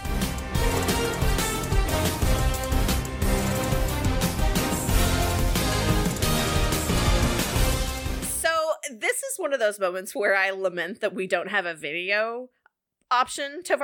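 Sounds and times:
sports broadcast theme music: 0.0s - 8.5s
speech: 9.4s - 13.8s.

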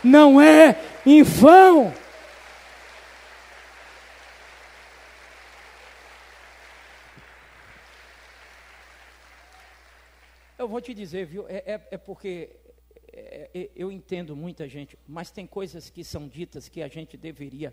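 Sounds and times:
speech: 0.0s - 2.0s, 10.6s - 12.6s, 13.2s - 17.7s
audience applause: 0.0s - 10.6s.

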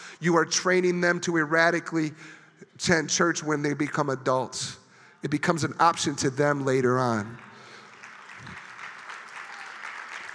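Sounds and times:
speech: 0.2s - 7.5s
sparse audience clapping: 7.0s - 10.3s.

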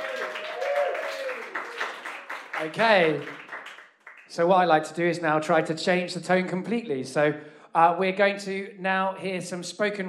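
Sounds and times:
crowd applauding: 0.0s - 4.3s
speech: 2.6s - 3.4s, 4.3s - 10.0s.

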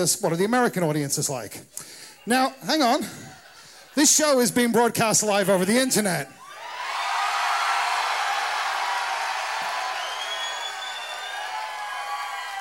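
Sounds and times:
speech: 0.0s - 3.4s, 4.0s - 6.4s
polite applause: 6.4s - 12.5s.

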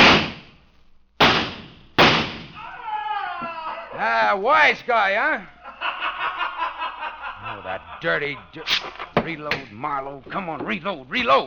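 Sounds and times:
gunshot fired back: 0.0s - 0.6s, 1.2s - 2.6s
speech: 4.0s - 5.6s, 7.6s - 11.4s
laughter: 5.5s - 9.5s.

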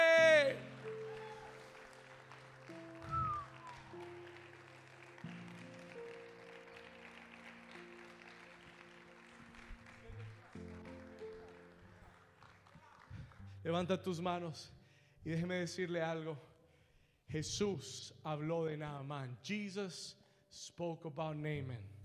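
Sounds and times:
audience applause: 0.0s - 13.5s
speech: 13.7s - 16.5s, 17.3s - 21.9s.

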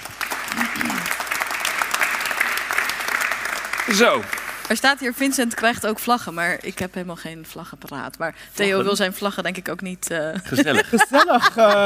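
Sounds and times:
audience applause: 0.0s - 4.8s
speech: 3.9s - 11.8s
laughter: 10.4s - 11.8s.

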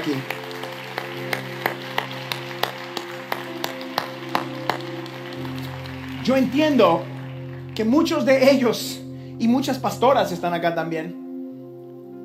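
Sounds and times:
speech: 0.0s - 0.4s, 6.3s - 7.1s, 7.8s - 11.2s
audience applauding: 0.0s - 9.0s.

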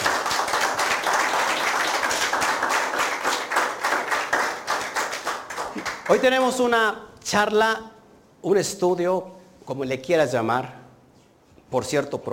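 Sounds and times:
audience clapping in applause: 0.0s - 6.8s
speech: 6.1s - 10.8s, 11.7s - 12.3s.

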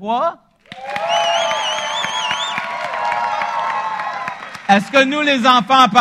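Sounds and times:
speech: 0.0s - 1.1s, 4.7s - 5.9s
audience applause: 0.6s - 5.5s
cheers and whoops: 0.7s - 4.8s.

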